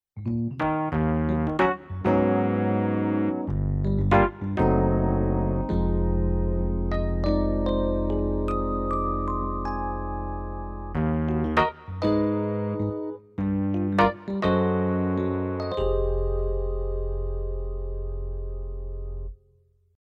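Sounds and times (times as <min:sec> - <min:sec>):
Rhodes electric piano: 0:00.2 - 0:19.4.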